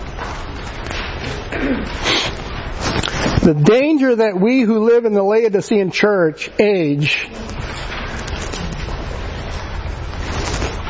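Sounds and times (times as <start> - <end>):
audience rustling paper pages: 2.1 - 3.6, 7.4 - 10.8
speech: 3.4 - 7.4.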